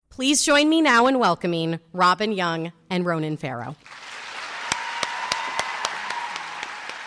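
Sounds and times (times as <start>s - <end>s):
speech: 0.2s - 4.1s
audience applause: 3.8s - 7.0s.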